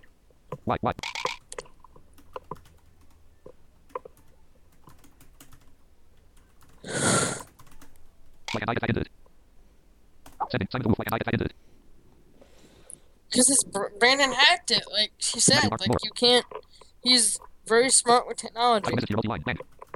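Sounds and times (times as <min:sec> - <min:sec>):
speech: 0:00.7 - 0:01.3, 0:08.6 - 0:09.1, 0:10.5 - 0:11.6, 0:13.4 - 0:19.7
typing on a computer keyboard: 0:01.0 - 0:08.6, 0:19.5 - 0:19.9.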